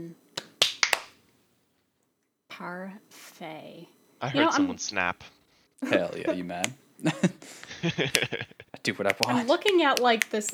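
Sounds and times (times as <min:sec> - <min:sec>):
hand claps for audio sync: 0:00.4 - 0:01.2, 0:06.0 - 0:06.8, 0:07.6 - 0:10.5
speech: 0:02.6 - 0:10.5
laughter: 0:04.2 - 0:05.2, 0:05.8 - 0:10.5.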